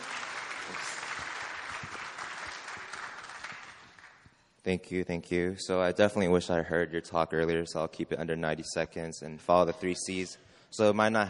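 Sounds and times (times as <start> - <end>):
audience applause welcoming a speaker: 0.0 - 4.2
speech: 4.7 - 11.2.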